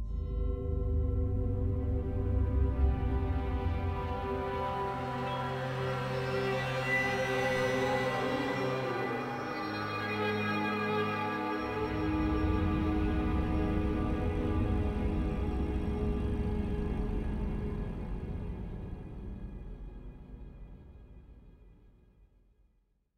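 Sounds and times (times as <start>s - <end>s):
spooky sound: 0.1s - 19.4s.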